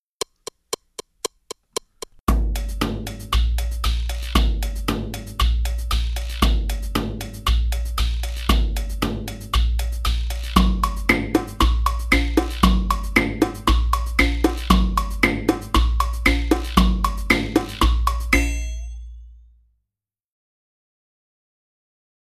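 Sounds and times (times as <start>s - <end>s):
street percussion beat: 1.5s - 19.1s.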